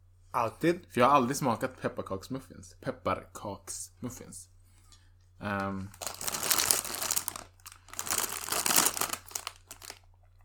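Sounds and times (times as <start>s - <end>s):
speech: 0.4s - 4.5s, 5.4s - 6.2s
paper rustling: 5.9s - 10.0s.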